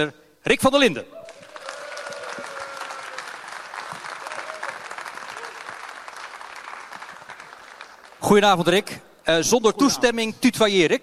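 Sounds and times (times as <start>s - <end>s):
speech: 0.0s - 1.2s, 8.2s - 11.0s
audience applause welcoming a guest: 1.2s - 8.4s.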